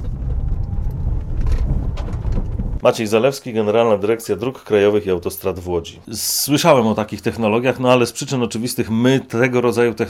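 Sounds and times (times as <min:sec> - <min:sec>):
car driving over bumpy rubble road: 0:00.0 - 0:02.8
knocks and rattles from bumps: 0:00.0 - 0:02.8
speech: 0:02.8 - 0:10.0.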